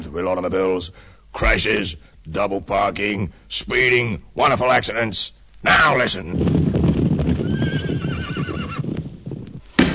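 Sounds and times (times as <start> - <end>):
speech: 0.0 - 6.7
horse hooves clip-clopping on street: 6.4 - 9.9
horse whinnying: 7.3 - 9.0.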